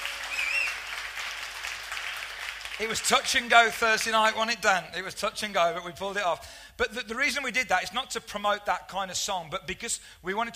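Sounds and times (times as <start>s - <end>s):
round of applause: 0.0s - 4.2s
speech: 2.8s - 10.5s.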